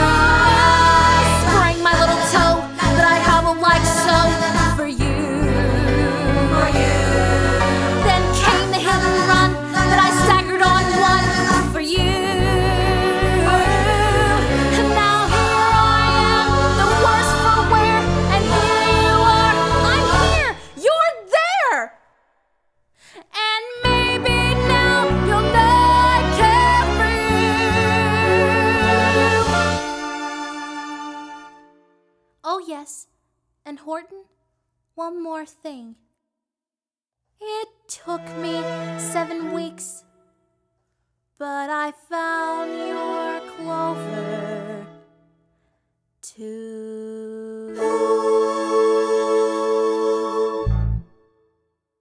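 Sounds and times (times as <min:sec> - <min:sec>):
vocals: 0:00.0 - 0:22.1, 0:23.0 - 0:31.8, 0:32.4 - 0:33.1, 0:33.7 - 0:34.3, 0:35.0 - 0:36.0, 0:37.4 - 0:40.2, 0:41.4 - 0:45.4, 0:46.2 - 0:51.2.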